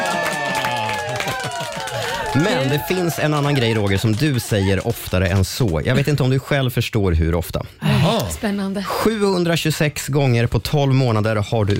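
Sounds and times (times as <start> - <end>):
short applause in studio: 0.0 - 6.4
speech: 2.3 - 11.7.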